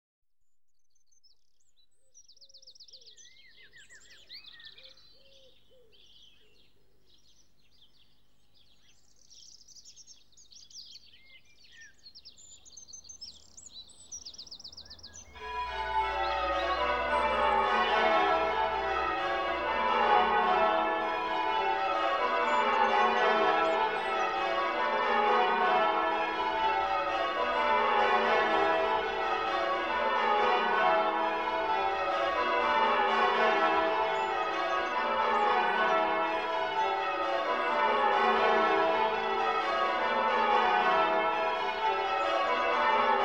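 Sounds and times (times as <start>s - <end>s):
dawn chorus: 15.2s - 43.2s
college bells ringing a change-ringing method: 15.3s - 43.2s.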